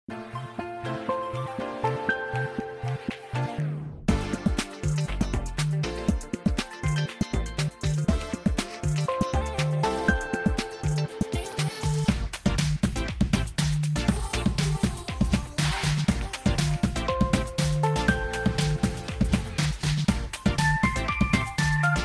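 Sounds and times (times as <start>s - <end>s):
pop remix: 0.1s - 22.0s.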